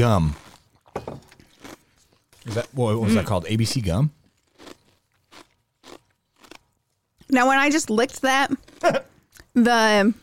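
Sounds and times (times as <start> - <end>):
speech: 0.0 - 0.4, 2.4 - 4.2, 7.3 - 10.2
crunching bites of a spicy fruity-flavored snack chip: 0.1 - 2.8, 4.2 - 7.4, 8.6 - 9.5.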